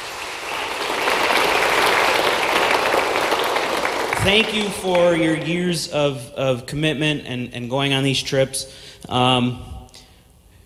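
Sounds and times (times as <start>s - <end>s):
crowd applauding: 0.0s - 5.8s
speech: 4.2s - 9.8s.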